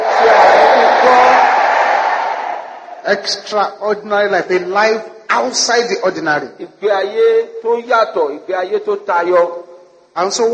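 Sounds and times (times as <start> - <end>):
audience shouting amen: 0.0 - 3.0
speech: 3.1 - 9.6, 10.2 - 10.5.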